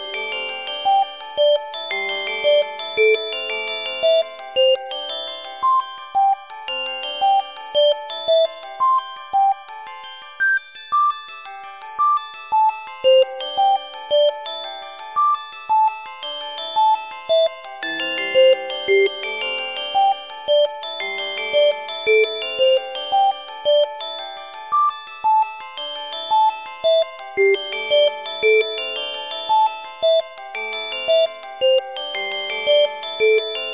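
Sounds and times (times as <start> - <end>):
glockenspiel: 0.0 - 33.7.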